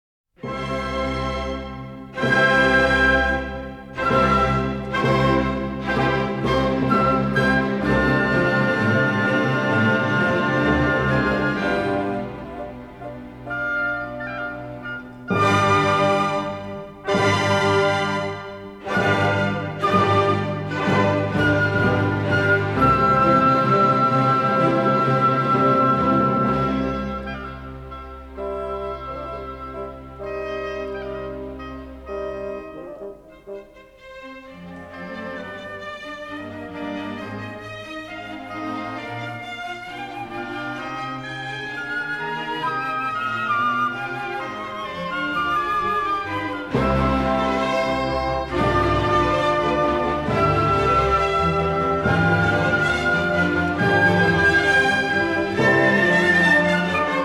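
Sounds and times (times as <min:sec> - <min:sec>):
piano concerto: 0:00.4 - 0:57.2.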